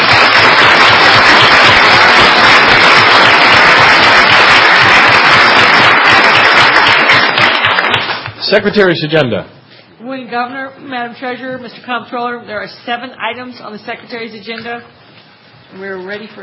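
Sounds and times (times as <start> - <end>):
big round of applause: 0.0 - 8.4
speech: 8.5 - 15.0, 15.7 - 16.4.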